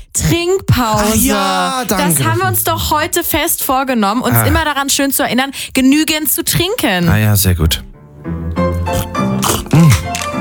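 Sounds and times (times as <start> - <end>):
speech: 0.2 - 8.5
laughter: 1.2 - 3.2, 4.3 - 4.6
plastic bottle of sparkling water twisted open with creaking crinkles: 9.4 - 10.3.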